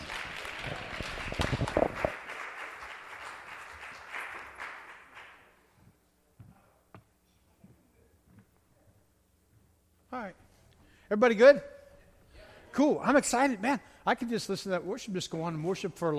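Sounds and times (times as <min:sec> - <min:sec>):
audience applause: 0:00.0 - 0:05.6
speech: 0:11.1 - 0:11.7, 0:12.8 - 0:16.1.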